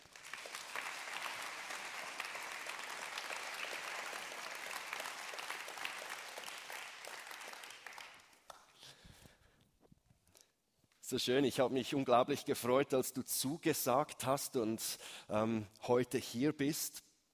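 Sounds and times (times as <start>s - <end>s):
audience applause: 0.0s - 8.6s
speech: 11.1s - 17.1s.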